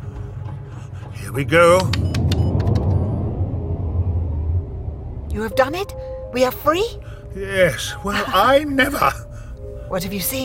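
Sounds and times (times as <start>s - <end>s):
spaceship main drive engaging with deep rumbling roar: 0.0s - 7.3s
speech: 1.3s - 2.1s, 5.4s - 9.2s, 9.9s - 10.4s.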